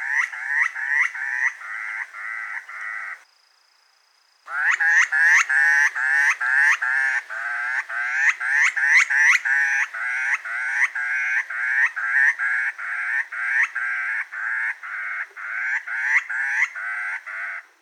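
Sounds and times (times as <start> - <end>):
grey butcherbird song: 0.0 - 17.8.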